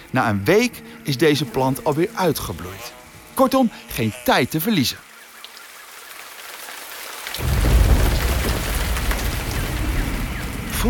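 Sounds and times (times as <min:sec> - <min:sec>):
speech: 0:00.1 - 0:05.1
tropical downpour: 0:05.8 - 0:10.8.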